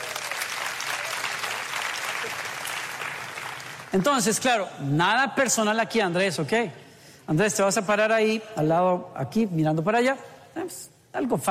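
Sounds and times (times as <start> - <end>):
audience applause: 0.0 - 4.0
speech: 3.9 - 11.4.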